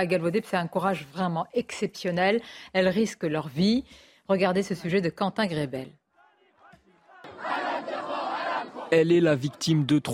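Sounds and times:
speech: 0:00.0 - 0:06.0, 0:08.9 - 0:10.1
street protest crowd chanting: 0:06.1 - 0:09.9.

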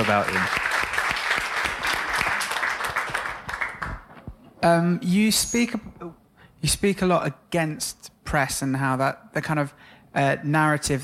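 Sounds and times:
speech: 0:00.0 - 0:00.6, 0:04.6 - 0:11.0
audience round of applause: 0:00.0 - 0:04.1.

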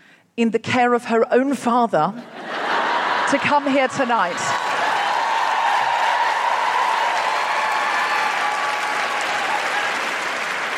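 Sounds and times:
speech: 0:00.4 - 0:02.4, 0:03.3 - 0:04.5
laughter: 0:02.3 - 0:05.1
audience applause: 0:04.2 - 0:10.7.

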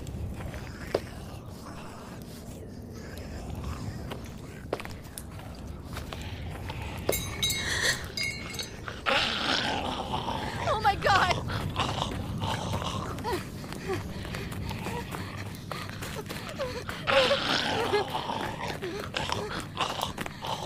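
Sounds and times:
low constant rumble: 0:00.0 - 0:20.6
zombie growling moans and snarls: 0:00.0 - 0:20.6.

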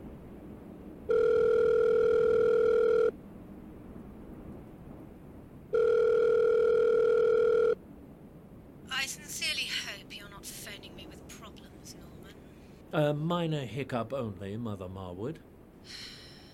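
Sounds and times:
faint hiss: 0:00.0 - 0:16.5
telephone line tone: 0:01.1 - 0:03.2, 0:05.7 - 0:07.8
speech: 0:13.0 - 0:15.5.

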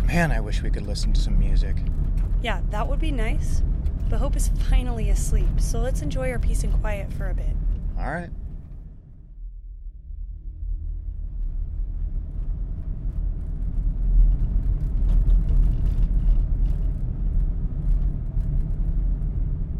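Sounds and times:
car driving on road: 0:00.0 - 0:09.2, 0:10.6 - 0:19.7
speech: 0:00.1 - 0:08.4.

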